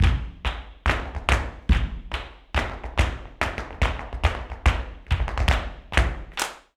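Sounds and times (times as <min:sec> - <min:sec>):
farruca flamenco tap percussion: 0:00.0 - 0:06.7.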